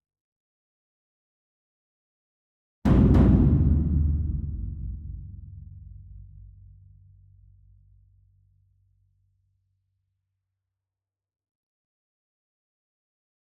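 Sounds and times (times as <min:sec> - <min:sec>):
distant ensemble concert bass drum: 0:02.9 - 0:06.4.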